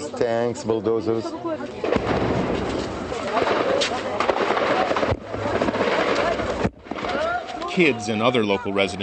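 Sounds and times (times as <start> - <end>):
speech: 0.2 - 2.8, 7.8 - 9.0
gunfire: 1.8 - 7.4.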